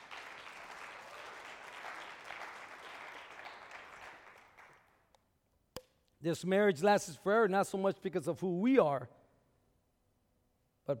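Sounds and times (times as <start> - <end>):
audience clapping: 0.0 - 5.0
speech: 6.2 - 9.2.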